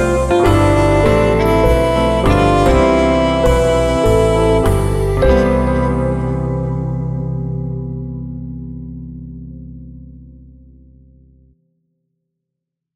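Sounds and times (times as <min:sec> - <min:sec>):
jazz version of a birthday song: 0:00.0 - 0:09.4.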